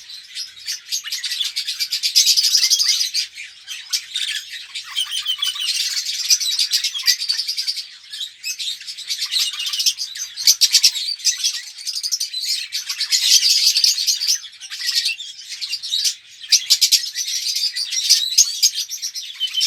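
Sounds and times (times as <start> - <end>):
red-rumped parrot Psephotus haematonotus song of sharp chirping and rattling trills: 0.0 - 19.6.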